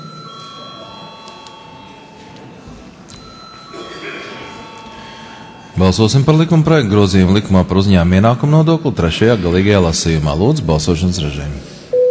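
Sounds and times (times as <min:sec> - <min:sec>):
parliament chamber bell ringing for a vote: 0:00.0 - 0:06.2
speech: 0:05.8 - 0:11.7.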